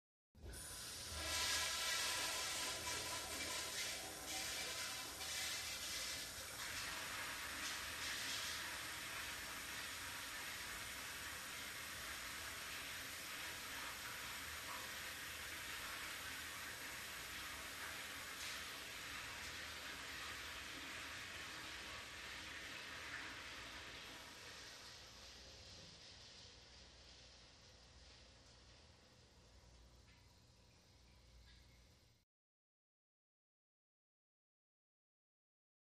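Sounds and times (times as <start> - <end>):
public restroom toilet flushing with reverb: 0.4 - 27.0.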